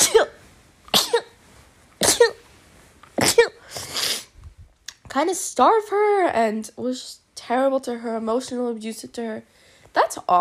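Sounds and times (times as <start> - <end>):
person sneezing: 0.0 - 1.4, 2.0 - 2.5, 3.1 - 4.4
speech: 5.2 - 10.4.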